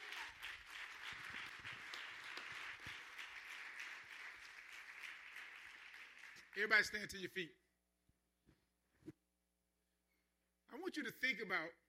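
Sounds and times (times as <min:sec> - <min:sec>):
crowd clapping: 0:00.0 - 0:07.1
speech: 0:06.6 - 0:07.6, 0:11.0 - 0:11.8.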